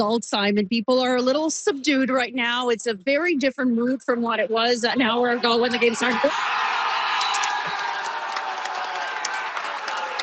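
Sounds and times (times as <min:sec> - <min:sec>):
speech: 0:00.0 - 0:06.6
stadium crowd cheering after a goal: 0:05.0 - 0:10.2
applause: 0:06.2 - 0:10.2.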